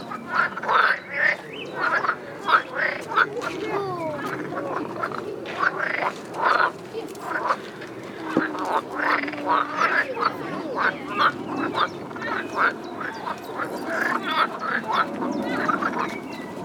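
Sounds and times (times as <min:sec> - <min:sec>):
frogs croaking in a dense chorus: 0:00.0 - 0:03.4, 0:04.4 - 0:16.1.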